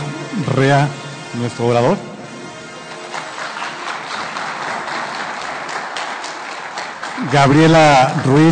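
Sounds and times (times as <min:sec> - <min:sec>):
speech: 0:00.4 - 0:02.1, 0:07.2 - 0:08.5
audience applause: 0:02.9 - 0:08.5.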